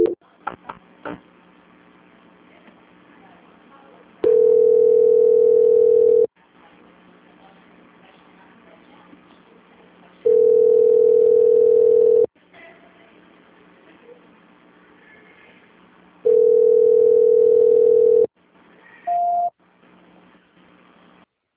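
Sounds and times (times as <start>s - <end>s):
telephone line tones while a call is being transferred: 4.2s - 6.3s, 10.3s - 12.3s, 16.2s - 18.3s.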